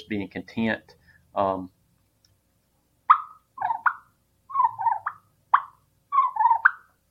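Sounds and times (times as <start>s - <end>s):
person's voice: 0.0s - 1.8s
speech: 0.0s - 1.8s
turkey purr on a turkey call: 3.1s - 6.9s.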